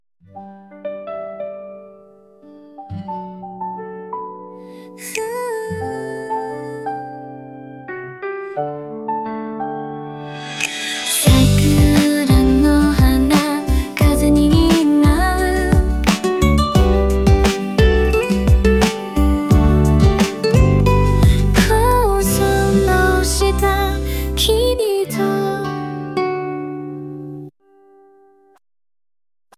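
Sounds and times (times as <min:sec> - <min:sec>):
Japanese vocal ballad: 0:04.7 - 0:07.4, 0:10.5 - 0:26.5.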